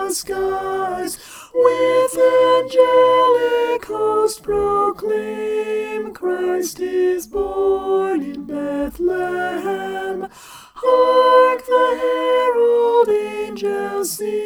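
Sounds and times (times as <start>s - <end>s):
alto singing a Christmas carol: 0.0s - 14.4s.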